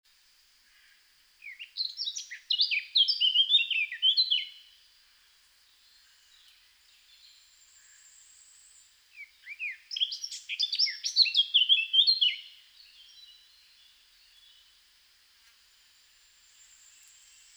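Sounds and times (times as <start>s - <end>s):
Eurasian blackcap song: 1.4s - 4.6s, 9.2s - 13.4s.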